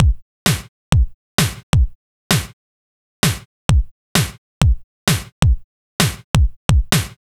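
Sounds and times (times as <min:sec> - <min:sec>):
kick drum: 0:00.0 - 0:02.6, 0:03.2 - 0:07.3
snare drum: 0:00.5 - 0:00.7, 0:01.4 - 0:01.6, 0:02.3 - 0:02.6, 0:03.2 - 0:03.5, 0:04.2 - 0:04.4, 0:05.1 - 0:07.2.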